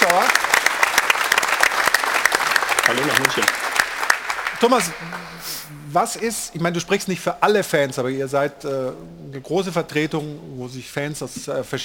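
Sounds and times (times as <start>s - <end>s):
audience applause: 0.0s - 5.9s
speech: 2.9s - 3.6s, 4.6s - 11.8s.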